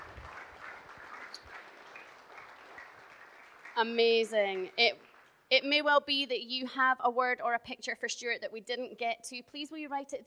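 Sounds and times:
audience applauding: 0:00.0 - 0:05.4
speech: 0:03.8 - 0:10.2.

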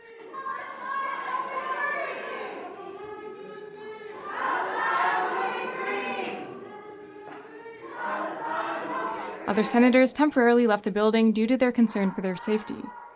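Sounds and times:
crowd of demonstrators chanting and shouting: 0:00.0 - 0:10.4, 0:11.7 - 0:13.1
speech: 0:09.5 - 0:13.0.

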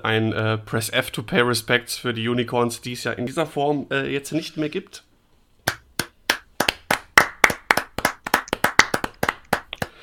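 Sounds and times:
speech: 0:00.0 - 0:05.1
slow sad hand clapping: 0:05.6 - 0:10.0.

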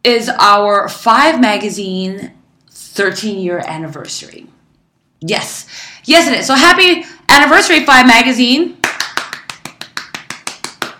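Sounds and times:
speech: 0:00.0 - 0:02.4, 0:03.0 - 0:04.6, 0:05.2 - 0:08.8
hand clapping: 0:08.8 - 0:10.9.

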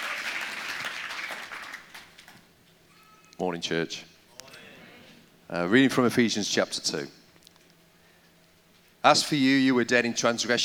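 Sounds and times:
round of applause from a crowd: 0:00.0 - 0:02.4
speech: 0:03.4 - 0:04.1, 0:05.5 - 0:07.2, 0:09.0 - 0:10.6.

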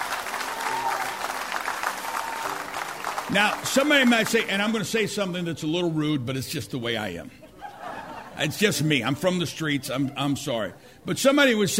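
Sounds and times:
audience applause: 0:00.0 - 0:04.8
speech: 0:03.3 - 0:07.4, 0:08.4 - 0:11.7
laughter: 0:07.2 - 0:10.5.

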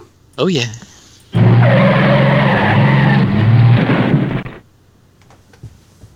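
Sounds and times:
presidential limousine the Beast roaring around the Daytona track on a victory lap: 0:01.4 - 0:04.6.

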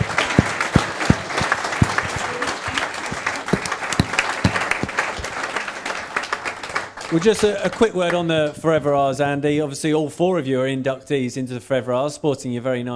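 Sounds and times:
audience applause: 0:00.0 - 0:08.0
speech: 0:07.1 - 0:12.9.

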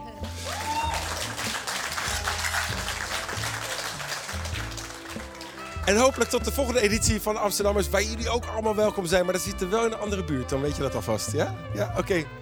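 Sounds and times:
audience applause: 0:00.2 - 0:06.4
speech: 0:05.9 - 0:12.4.

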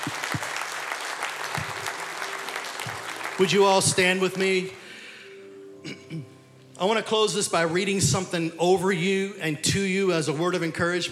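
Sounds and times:
audience applauding: 0:00.0 - 0:05.0
speech: 0:03.4 - 0:04.8, 0:06.8 - 0:11.1.

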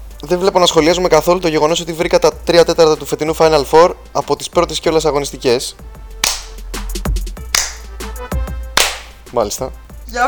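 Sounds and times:
speech: 0:00.2 - 0:06.0, 0:09.4 - 0:10.2
sarcastic slow hand clapping: 0:06.2 - 0:06.6, 0:07.4 - 0:07.9, 0:08.7 - 0:09.2.

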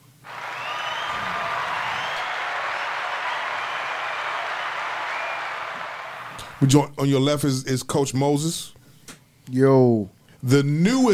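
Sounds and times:
hand claps: 0:00.3 - 0:06.6
speech: 0:06.6 - 0:08.8, 0:09.5 - 0:11.1.

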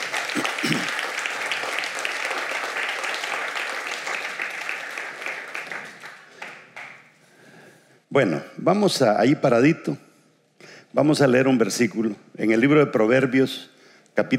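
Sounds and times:
audience applause: 0:00.0 - 0:07.1
speech: 0:08.2 - 0:10.1, 0:10.9 - 0:14.3.

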